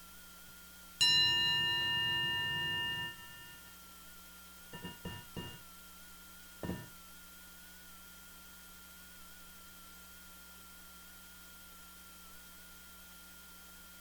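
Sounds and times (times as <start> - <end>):
mindfulness bell ringing: 1.0 - 3.7, 4.8 - 5.6, 6.6 - 6.9.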